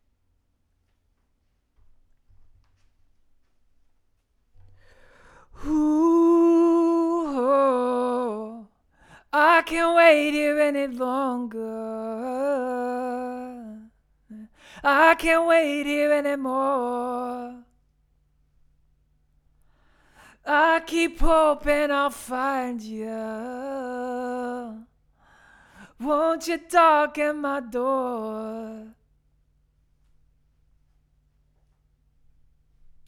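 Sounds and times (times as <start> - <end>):
vocals: 4.8 - 17.8, 19.8 - 29.1.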